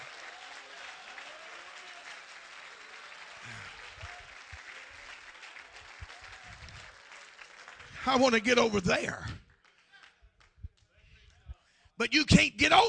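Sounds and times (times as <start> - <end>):
audience clapping hands: 0.0 - 11.6
speech: 8.1 - 9.4, 12.0 - 12.8.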